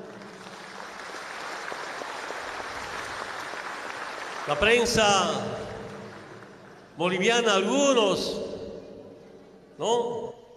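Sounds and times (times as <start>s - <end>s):
crowd applause at a rally: 0.0s - 7.0s
speech: 4.5s - 5.6s, 7.0s - 8.4s, 9.8s - 10.2s.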